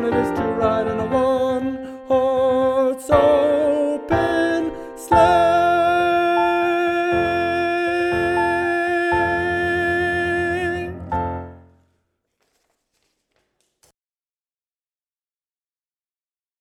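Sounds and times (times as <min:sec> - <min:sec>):
soprano melody: 0:00.0 - 0:11.7.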